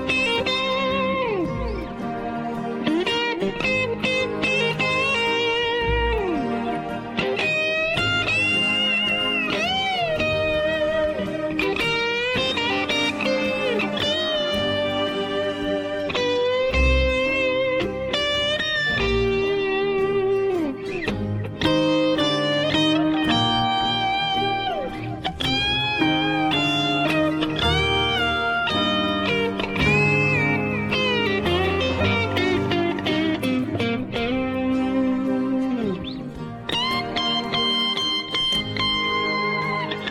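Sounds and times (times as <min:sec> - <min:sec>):
dry guitar solo: 0:00.0 - 0:40.0.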